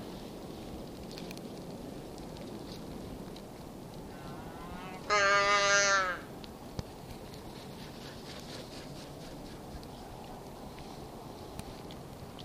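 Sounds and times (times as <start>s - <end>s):
muskox calf call: 4.1s - 6.3s.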